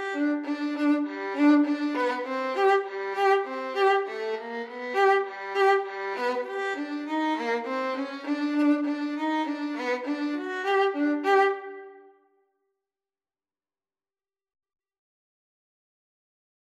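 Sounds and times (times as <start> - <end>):
violin duet: 0.0 - 12.2.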